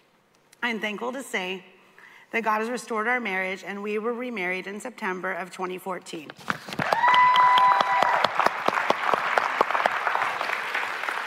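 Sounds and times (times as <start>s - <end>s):
speech: 0.6s - 1.7s, 2.3s - 6.8s
audience applause: 6.8s - 11.2s.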